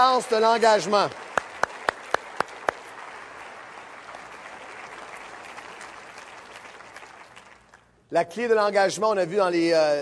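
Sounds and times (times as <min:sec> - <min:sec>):
speech: 0:00.0 - 0:01.3, 0:08.1 - 0:10.0
audience applauding: 0:00.0 - 0:08.0.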